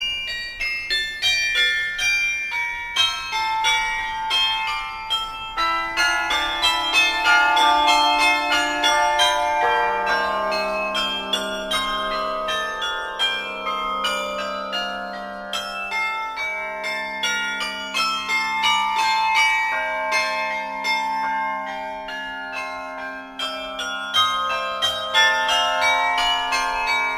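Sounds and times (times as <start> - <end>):
carillon music: 0.2 - 27.1.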